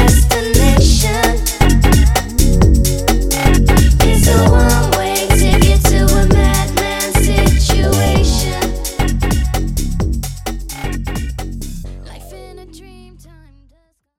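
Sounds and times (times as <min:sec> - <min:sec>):
130 bpm club dance music: 0:00.2 - 0:11.3.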